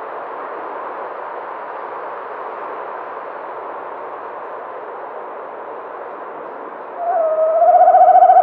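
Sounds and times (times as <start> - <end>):
tawny owl giving upward-hooked and harsh calls: 7.0 - 8.4.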